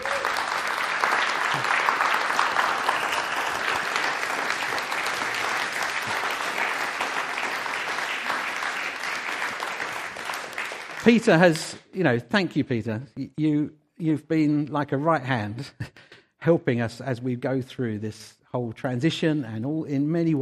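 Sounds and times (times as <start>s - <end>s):
audience clapping: 0.0s - 11.8s
speech: 11.0s - 20.4s.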